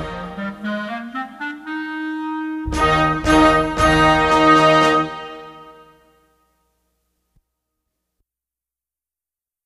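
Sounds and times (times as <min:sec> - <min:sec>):
clarinet caprice: 0:00.0 - 0:06.6.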